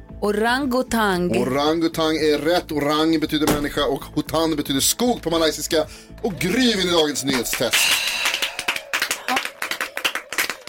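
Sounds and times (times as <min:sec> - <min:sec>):
speech: 0:00.2 - 0:08.0
judge clapping hands: 0:07.2 - 0:10.6.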